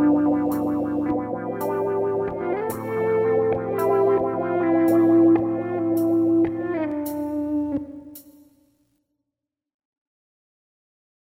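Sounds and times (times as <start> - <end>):
guitar: 0.0 - 8.2.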